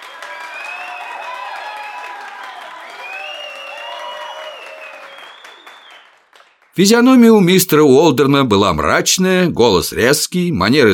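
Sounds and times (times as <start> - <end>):
audience applauding: 0.0 - 7.2
speech: 6.8 - 10.9.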